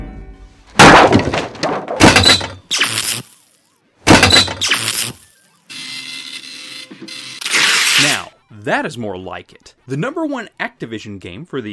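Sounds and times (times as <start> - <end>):
ball peen hammer smashing a computer: 0.7 - 2.6, 4.1 - 4.6
glass and plastic cracking and shattering: 0.8 - 3.2, 4.1 - 5.2
speech: 8.7 - 11.6.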